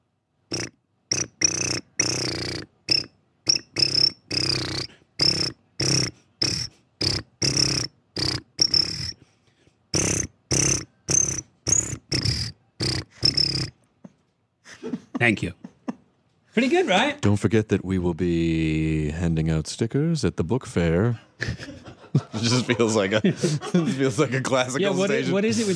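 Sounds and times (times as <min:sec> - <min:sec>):
crickets chirping: 0:00.5 - 0:09.2, 0:09.9 - 0:13.7
laughter: 0:14.1 - 0:16.2, 0:21.2 - 0:25.7
speech: 0:15.2 - 0:15.6, 0:16.6 - 0:21.7, 0:22.4 - 0:25.7.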